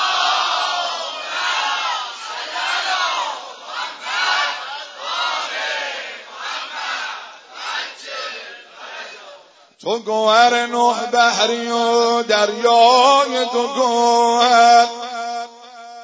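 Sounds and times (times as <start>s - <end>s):
crowd loudly chanting salawat: 0.0s - 9.6s
speech: 9.8s - 15.0s.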